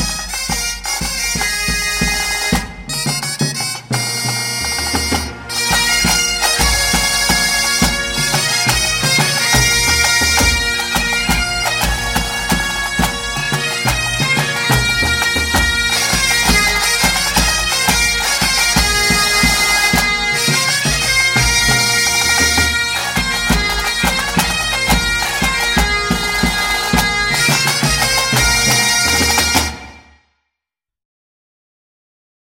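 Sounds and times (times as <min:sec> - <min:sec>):
bagad instruments: 0:00.0 - 0:30.2.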